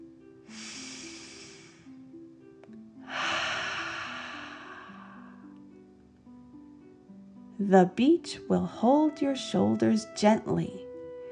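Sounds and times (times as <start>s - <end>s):
deep dragon breaths during a relaxation exercise: 0.5s - 2.0s, 3.0s - 5.5s
speech: 7.6s - 10.8s
soft steady melodic tone: 7.7s - 11.2s.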